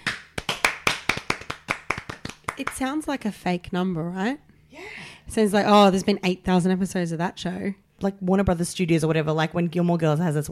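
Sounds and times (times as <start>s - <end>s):
hands clapping: 0.0s - 2.9s
speech: 2.6s - 10.5s.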